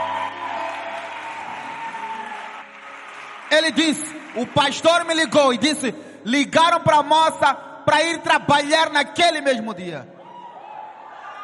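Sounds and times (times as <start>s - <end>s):
audience clapping hands: 0.0s - 5.8s
speech: 3.5s - 10.2s.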